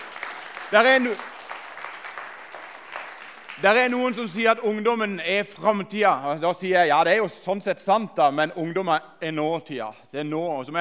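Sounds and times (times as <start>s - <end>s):
audience applause: 0.0s - 4.2s
speech: 0.7s - 1.3s, 3.6s - 10.8s.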